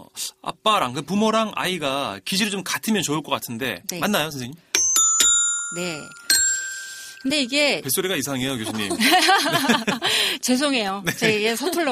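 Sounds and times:
speech: 0.2s - 4.7s, 5.7s - 6.2s, 7.2s - 11.9s
bright bell-like correct-answer chime jingle: 4.8s - 7.7s
laughter: 8.4s - 10.2s, 11.1s - 11.9s.

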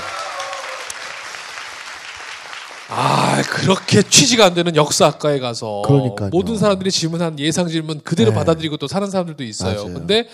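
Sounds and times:
audience applause: 0.0s - 4.5s
speech: 2.9s - 10.3s.

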